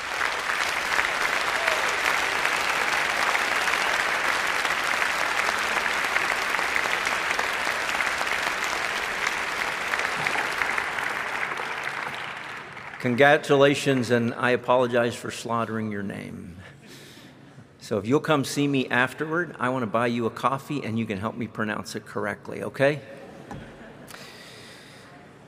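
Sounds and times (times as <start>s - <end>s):
audience applause: 0.0s - 13.3s
speech: 13.0s - 16.6s, 17.9s - 23.2s.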